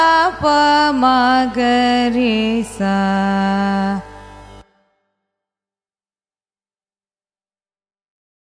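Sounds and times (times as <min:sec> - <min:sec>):
carnatic music ascending and descending raga scale: 0:00.0 - 0:05.2.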